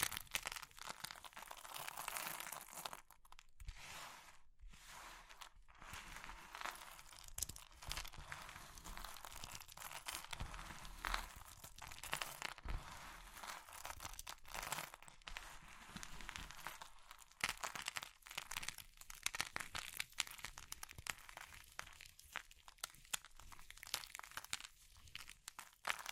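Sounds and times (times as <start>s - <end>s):
soap chalk or meringue crushed and crinkled: 0.0s - 3.6s, 5.3s - 26.1s.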